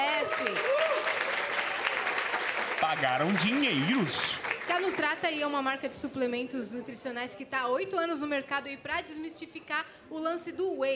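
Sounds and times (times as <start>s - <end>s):
audience applause: 0.0s - 5.3s
speech: 2.9s - 10.9s.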